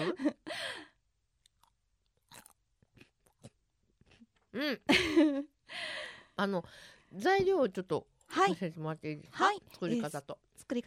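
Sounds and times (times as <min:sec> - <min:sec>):
laughter: 0:00.0 - 0:00.4
crunchy chewing of snap peas: 0:01.4 - 0:04.4
speech: 0:04.6 - 0:05.8, 0:06.4 - 0:10.8.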